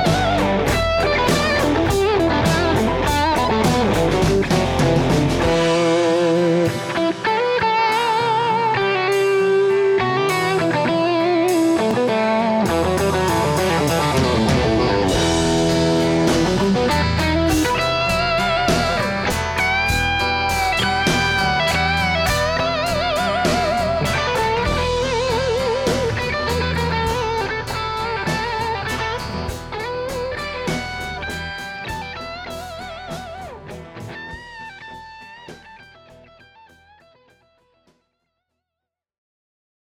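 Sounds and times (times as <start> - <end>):
Heritage H150 guitar: 0.0 - 37.6.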